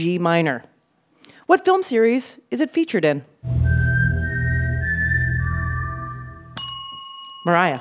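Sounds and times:
speech: 0.0 - 0.7, 1.5 - 3.6, 7.4 - 7.7
person whistling a four-note melody: 3.5 - 6.6.

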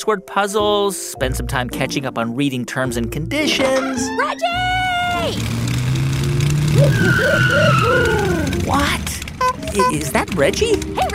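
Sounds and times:
speech: 0.0 - 5.7, 6.8 - 11.1
cartoon vehicle engine as a pigeon drives up in a motor pickle: 3.9 - 11.1
bouncy warbling tones: 6.6 - 11.1.

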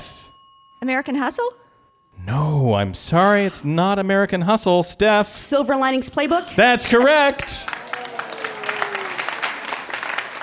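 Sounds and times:
speech: 0.8 - 7.8
audience applauding a correct guess: 6.9 - 10.4.

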